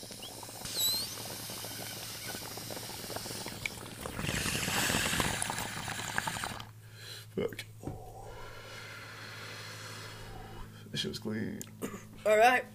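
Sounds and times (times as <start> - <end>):
water bubbling in a bong as someone smokes: 0.0 - 6.7
speech: 11.0 - 12.7.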